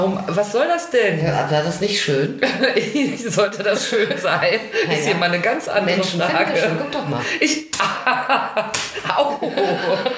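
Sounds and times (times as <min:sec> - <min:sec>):
speech: 0:00.0 - 0:10.1
laughter: 0:02.4 - 0:05.3, 0:06.5 - 0:10.1
hand slapping a person: 0:07.7 - 0:09.2.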